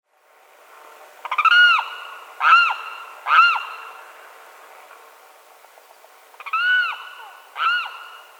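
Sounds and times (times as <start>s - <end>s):
limpkin wailing cries: 1.2s - 4.0s, 6.4s - 8.3s.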